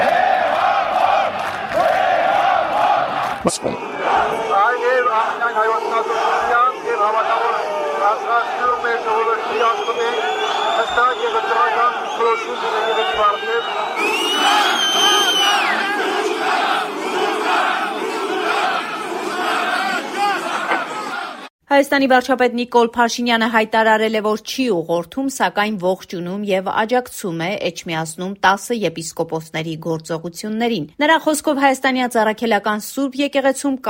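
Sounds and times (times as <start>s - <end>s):
crowd chanting and shouting slogans at Etchmiadzin: 0.0s - 21.5s
speech: 3.4s - 3.9s, 5.1s - 16.6s, 21.8s - 33.8s.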